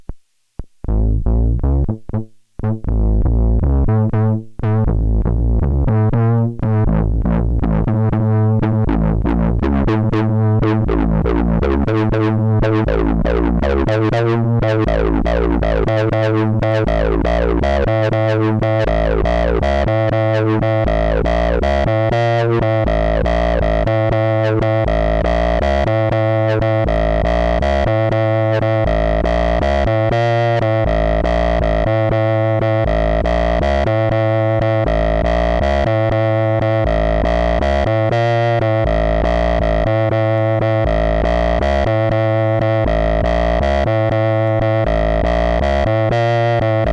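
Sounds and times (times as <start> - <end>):
aggressive dance bass line: 0.8 - 46.9.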